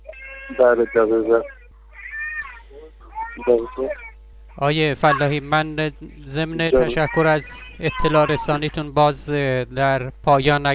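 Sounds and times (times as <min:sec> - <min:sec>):
children crying: 0:00.0 - 0:05.4, 0:06.8 - 0:08.7
speech: 0:00.5 - 0:01.6, 0:03.4 - 0:04.0, 0:04.6 - 0:10.7.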